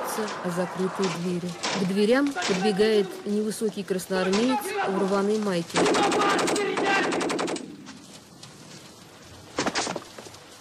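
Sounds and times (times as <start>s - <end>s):
speech: 0.2s - 7.4s
burst of rapid automatic gunfire: 5.8s - 7.8s.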